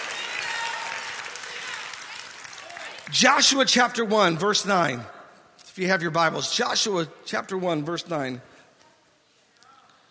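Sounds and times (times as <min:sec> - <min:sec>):
audience clapping: 0:00.0 - 0:03.6
speech: 0:03.1 - 0:05.2, 0:05.8 - 0:08.5.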